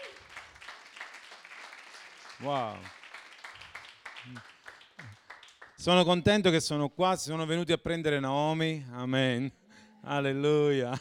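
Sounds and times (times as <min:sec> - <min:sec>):
church congregation applause welcoming young visitors from Bari: 0:00.0 - 0:06.1
speech: 0:02.4 - 0:03.0, 0:04.2 - 0:04.5, 0:05.8 - 0:10.9.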